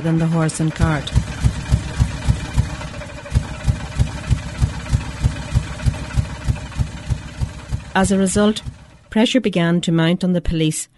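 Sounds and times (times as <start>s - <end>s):
speech: 0.0s - 1.3s, 8.0s - 10.9s
early motor car engine running: 0.0s - 9.5s.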